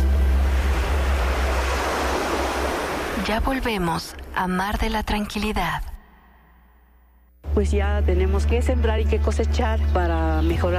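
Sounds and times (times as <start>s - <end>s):
ocean waves and surf: 0.0s - 3.7s
speech: 3.2s - 5.9s, 7.6s - 10.7s.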